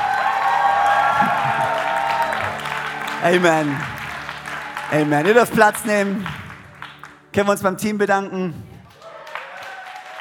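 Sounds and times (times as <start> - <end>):
crowd applauding and cheering: 0.0 - 7.9, 8.8 - 10.1
sustained musical tones: 1.3 - 8.0
speech: 3.2 - 4.0, 4.9 - 6.4, 7.4 - 8.7.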